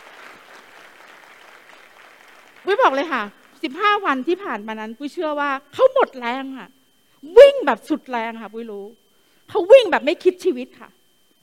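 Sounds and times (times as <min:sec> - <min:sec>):
room of people applauding at a business event: 0:00.0 - 0:03.6
speech: 0:02.7 - 0:11.0.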